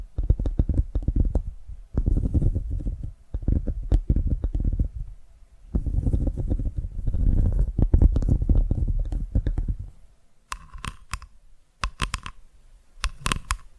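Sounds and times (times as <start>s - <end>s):
crackly taps with low rumbling body: 0.1s - 4.9s, 5.7s - 9.9s, 11.8s - 12.4s, 13.0s - 13.7s
sharp bright clicks: 10.5s - 12.4s, 13.0s - 13.7s.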